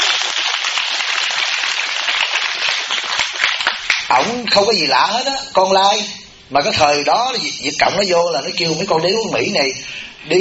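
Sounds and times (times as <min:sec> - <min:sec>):
audience applause: 0:00.0 - 0:04.1
speech: 0:04.1 - 0:10.3.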